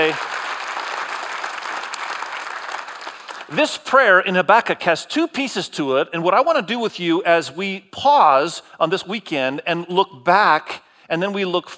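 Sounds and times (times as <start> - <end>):
church congregation clapping to welcome one another: 0.0 - 3.8
speech: 0.1 - 0.3, 3.5 - 11.7.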